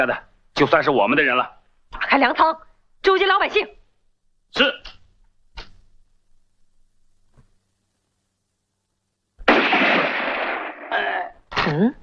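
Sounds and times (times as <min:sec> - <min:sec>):
speech: 0:00.0 - 0:03.8, 0:04.5 - 0:05.0, 0:11.6 - 0:12.0
gunshot: 0:09.4 - 0:11.3.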